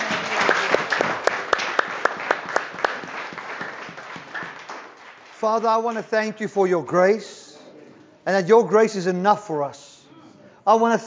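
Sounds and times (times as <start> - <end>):
audience clapping hands: 0.0 - 6.4
speech: 5.4 - 7.4, 8.2 - 9.9, 10.6 - 11.0.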